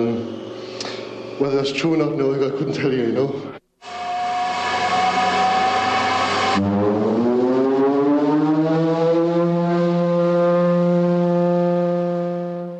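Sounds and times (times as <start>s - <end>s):
speech: 1.4s - 3.6s
standby siren-type foghorn sounding a pure musical note: 3.8s - 12.7s.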